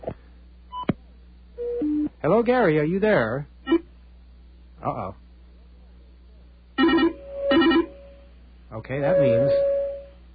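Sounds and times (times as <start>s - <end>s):
speech: 2.2s - 3.5s, 4.8s - 5.2s, 8.8s - 9.7s
telephone ringing: 6.8s - 8.2s, 9.1s - 10.1s.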